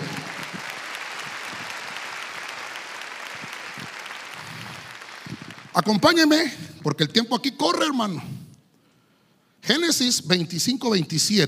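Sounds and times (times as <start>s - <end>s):
audience clapping: 0.0s - 6.6s
speech: 5.8s - 8.3s, 9.6s - 11.4s.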